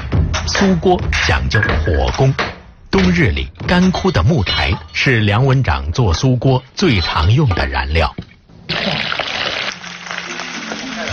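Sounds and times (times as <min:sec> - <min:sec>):
speech: 0:00.6 - 0:09.1
fish and tofu deep-frying in oil: 0:08.7 - 0:11.1.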